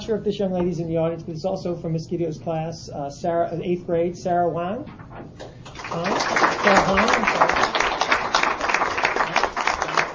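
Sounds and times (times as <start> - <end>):
speech: 0.1 - 7.6
audience applause: 5.7 - 10.1.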